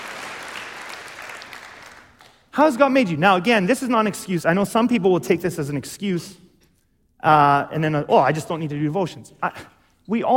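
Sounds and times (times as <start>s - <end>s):
audience applauding: 0.0s - 2.4s
speech: 2.6s - 6.4s, 7.2s - 10.3s.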